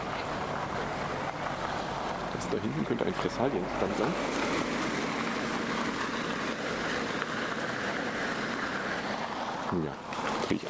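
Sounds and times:
passenger car driving past: 0:00.0 - 0:10.6
speech: 0:02.4 - 0:04.6, 0:09.7 - 0:10.6.

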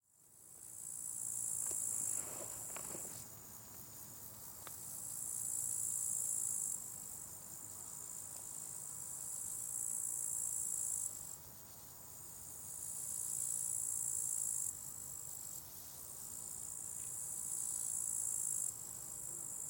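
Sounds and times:
cricket trilling: 0:00.6 - 0:19.6.

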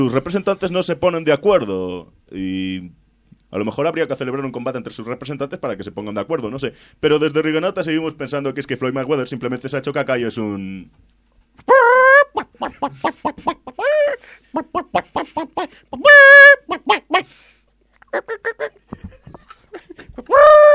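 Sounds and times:
speech: 0:00.0 - 0:11.9, 0:12.6 - 0:17.5, 0:18.1 - 0:19.1
chicken clucking and squawking: 0:11.7 - 0:17.4, 0:18.1 - 0:18.8, 0:20.0 - 0:20.7.

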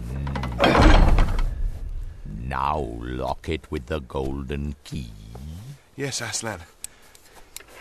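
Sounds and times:
door hinge creaking: 0:00.3 - 0:01.6
icicle-covered door shutting with a heavy thud: 0:00.5 - 0:01.6
speech: 0:02.6 - 0:05.2, 0:06.0 - 0:06.8.

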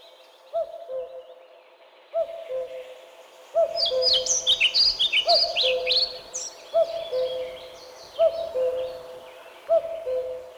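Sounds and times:
common cuckoo calling: 0:03.6 - 0:10.5
songbirds twittering: 0:03.6 - 0:10.5.

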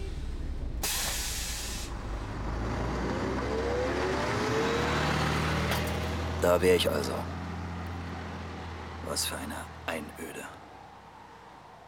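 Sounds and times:
bus air brakes hissing at a stop: 0:00.0 - 0:02.3
bus engine noise with rising whine as it moves: 0:00.0 - 0:11.2
speech: 0:06.4 - 0:07.3, 0:09.2 - 0:10.1.

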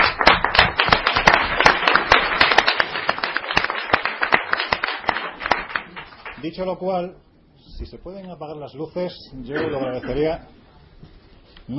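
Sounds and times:
audience clapping at a live mystery-themed presentation: 0:00.0 - 0:06.6
speech: 0:06.4 - 0:10.6.

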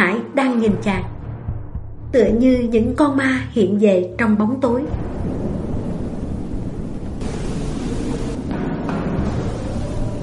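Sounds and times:
speech: 0:00.2 - 0:01.2, 0:02.1 - 0:05.0
thunder: 0:04.8 - 0:10.2
rain: 0:04.9 - 0:10.2.

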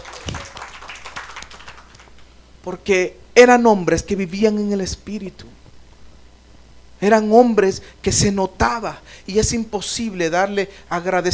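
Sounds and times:
church congregation applauding during a sermon: 0:00.0 - 0:02.3
speech: 0:02.6 - 0:05.6, 0:07.0 - 0:11.3.

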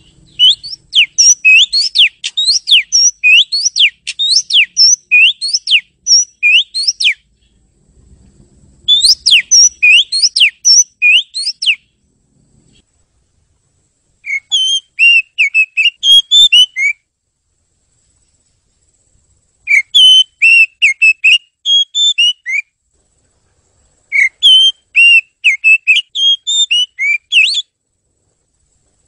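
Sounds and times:
bird whistling bright pure notes: 0:00.0 - 0:07.2, 0:08.9 - 0:11.9, 0:14.2 - 0:17.0, 0:19.7 - 0:22.7, 0:24.1 - 0:27.7.

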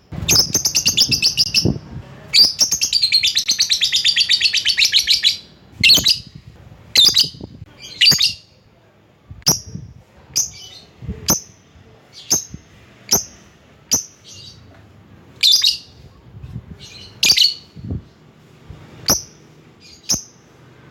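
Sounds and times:
lovebird chattering and chirping: 0:00.2 - 0:06.4, 0:07.0 - 0:08.5, 0:09.5 - 0:11.6, 0:12.2 - 0:14.6, 0:15.4 - 0:16.0, 0:16.8 - 0:17.8, 0:19.0 - 0:20.8.

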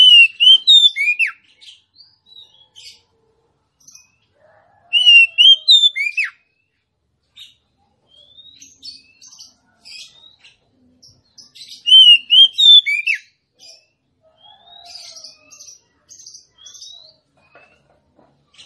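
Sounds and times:
female Oriental magpie-robin singing rich whistled notes: 0:00.0 - 0:01.4, 0:04.9 - 0:06.4, 0:11.8 - 0:13.3.

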